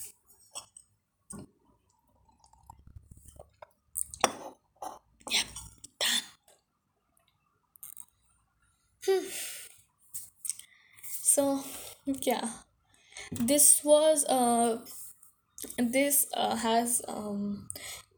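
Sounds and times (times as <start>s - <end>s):
person slurping coffee from a cup: 2.2s - 6.2s
coffee cup clinking: 3.4s - 5.0s
speech: 11.4s - 12.6s, 13.3s - 15.0s, 15.8s - 17.7s.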